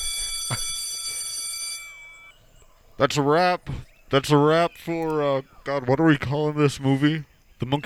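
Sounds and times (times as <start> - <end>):
school bell ringing: 0.0 - 2.6
speech: 3.0 - 7.8.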